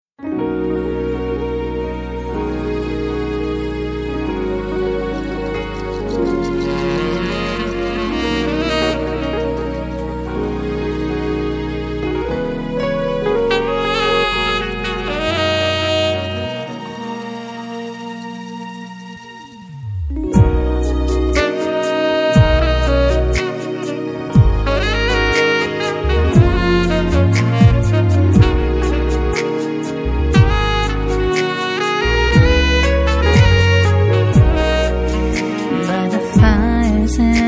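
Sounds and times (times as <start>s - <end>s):
sexy saxophone: 0.2s - 37.4s.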